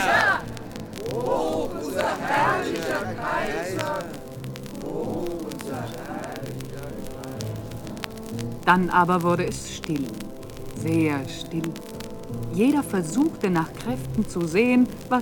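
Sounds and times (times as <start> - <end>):
crowd cheering and shouting: 0.0 - 6.6
speech: 8.7 - 15.2.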